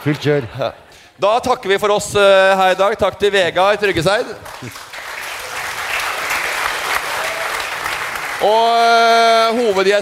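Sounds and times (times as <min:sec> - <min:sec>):
speech: 0:00.0 - 0:04.9, 0:08.4 - 0:09.9
audience applause: 0:04.4 - 0:09.9.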